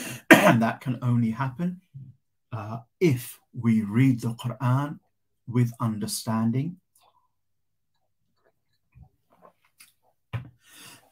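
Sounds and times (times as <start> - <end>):
cough: 0.0 - 0.8
speech: 0.5 - 6.8.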